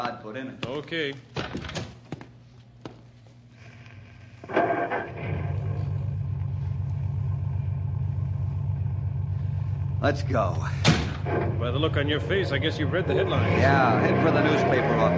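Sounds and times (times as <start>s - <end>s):
speech: 0.0s - 1.8s, 10.0s - 15.1s
car engine cranking and rumbling: 4.4s - 15.1s.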